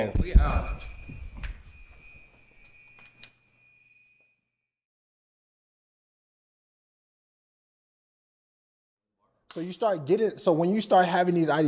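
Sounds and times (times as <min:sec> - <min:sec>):
fire alarm going off with a piercing high tone: 0:00.0 - 0:04.7
speech: 0:09.5 - 0:11.6.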